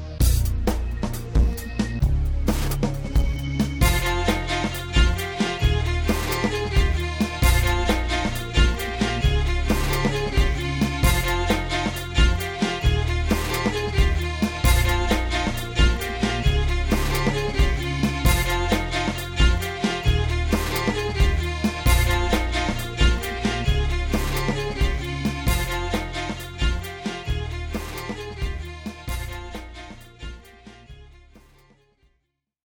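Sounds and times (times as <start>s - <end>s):
instrumental music: 0.1s - 31.7s.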